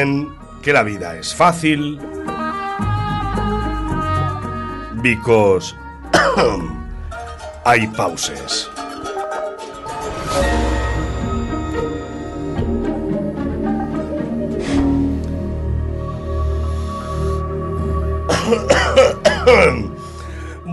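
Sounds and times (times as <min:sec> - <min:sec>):
speech: 0:00.0 - 0:02.3, 0:05.0 - 0:06.8, 0:07.6 - 0:08.8
steady tonal background: 0:00.0 - 0:20.7
person coughing: 0:06.1 - 0:06.8, 0:18.3 - 0:19.9.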